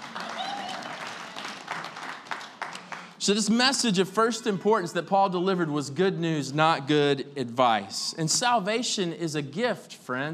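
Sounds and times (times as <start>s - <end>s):
audience clapping: 0.0s - 3.6s
speech: 3.2s - 10.3s.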